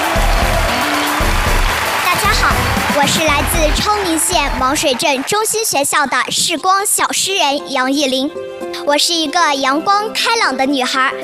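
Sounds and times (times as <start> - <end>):
audience applause welcoming young poets onto a stage: 0.0 - 6.0
speech: 3.0 - 11.2.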